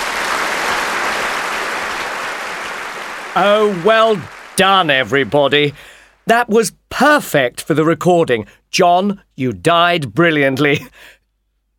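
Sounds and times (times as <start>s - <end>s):
audience clapping after a play: 0.0s - 6.3s
speech: 3.4s - 11.2s.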